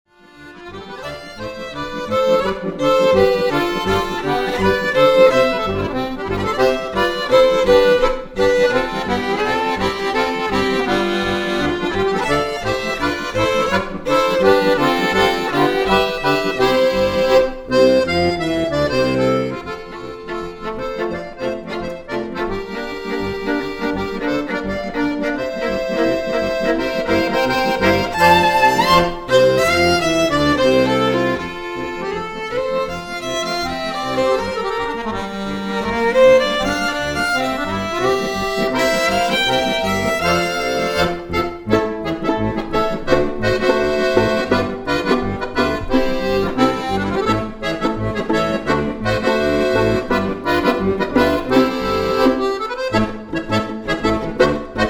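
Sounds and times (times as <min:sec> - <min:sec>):
polka music: 0:00.1 - 0:54.8.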